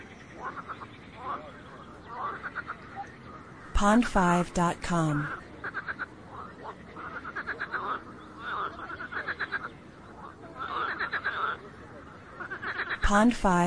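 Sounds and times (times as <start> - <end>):
frogs croaking in pulsed trills: 0.0 - 13.6
speech: 3.8 - 5.4, 13.1 - 13.6.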